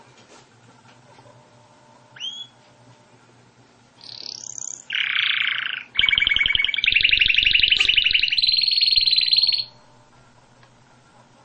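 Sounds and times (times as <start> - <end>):
canary song: 2.2 - 2.6, 4.0 - 10.0.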